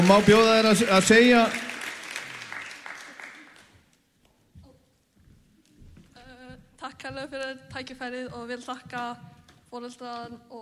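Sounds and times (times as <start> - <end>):
speech: 0.0 - 1.6, 6.8 - 10.6
audience clapping at an award ceremony: 0.0 - 3.9
low thumps: 5.8 - 9.5.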